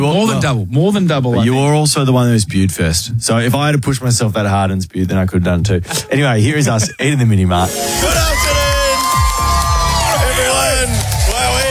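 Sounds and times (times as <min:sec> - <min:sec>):
speech: 0:00.0 - 0:08.5
crowd cheering wildly: 0:07.7 - 0:11.6.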